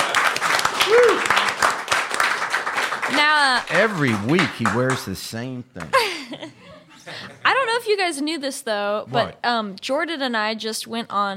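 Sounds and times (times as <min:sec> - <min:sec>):
applause for a musical guest on a talk show: 0:00.0 - 0:05.5
speech: 0:03.2 - 0:06.1, 0:07.9 - 0:11.3
laughter: 0:03.8 - 0:07.7.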